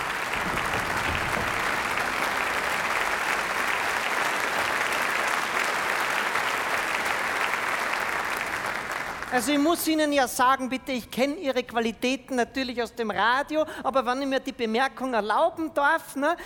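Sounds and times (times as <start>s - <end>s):
audience applause: 0.0s - 9.6s
speech: 9.4s - 16.4s.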